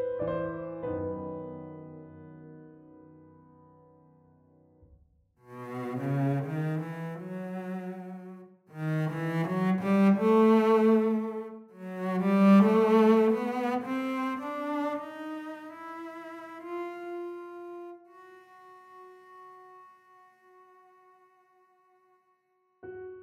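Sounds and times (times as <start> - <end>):
cello: 5.4 - 23.2.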